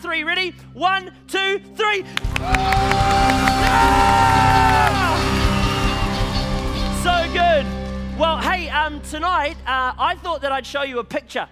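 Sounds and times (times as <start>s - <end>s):
speech: 0.0s - 5.0s, 7.1s - 11.5s
high whoops and shouts: 2.2s - 6.5s
loud crowd applause: 2.2s - 7.4s.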